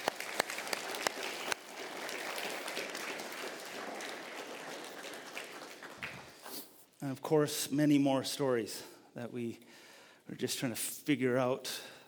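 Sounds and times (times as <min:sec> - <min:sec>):
church audience applause: 0:00.0 - 0:06.4
speech: 0:07.0 - 0:09.7, 0:10.3 - 0:11.9.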